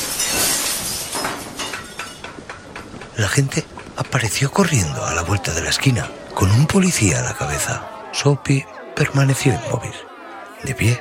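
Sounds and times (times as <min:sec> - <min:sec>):
cobblestone smashing a shop window: 0:00.0 - 0:04.8
speech: 0:03.2 - 0:10.9.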